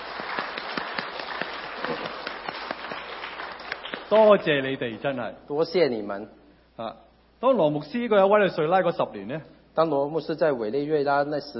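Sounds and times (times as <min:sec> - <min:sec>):
audience applause: 0:00.0 - 0:04.4
speech: 0:04.1 - 0:11.5.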